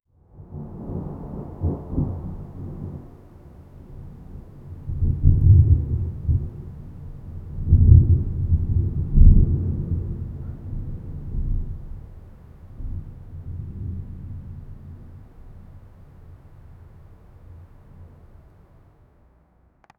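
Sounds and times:
thunder rumbling: 0:00.4 - 0:18.5.

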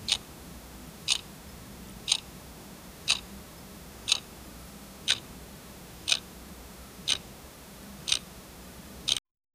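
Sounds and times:
faint clock ticking: 0:00.0 - 0:00.3, 0:01.0 - 0:01.3, 0:02.0 - 0:02.3, 0:03.0 - 0:03.2, 0:04.0 - 0:04.3, 0:05.0 - 0:05.3, 0:06.0 - 0:06.3, 0:07.0 - 0:07.3, 0:08.0 - 0:08.3, 0:09.0 - 0:09.2.

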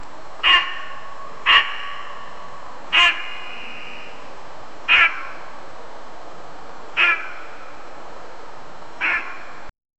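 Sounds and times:
very sharp deer call: 0:00.4 - 0:04.2, 0:04.9 - 0:05.5, 0:07.0 - 0:07.8, 0:09.0 - 0:09.6.

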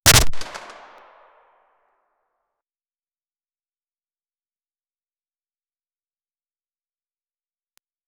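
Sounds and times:
rifle firing shooter sound effect: 0:00.0 - 0:01.2.

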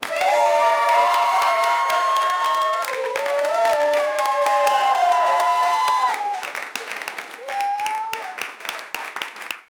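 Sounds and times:
audience clapping at a concert: 0:00.0 - 0:09.7.

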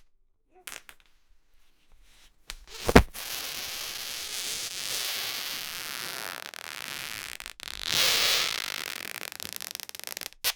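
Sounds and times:
person's body inflating: 0:02.7 - 0:10.3.

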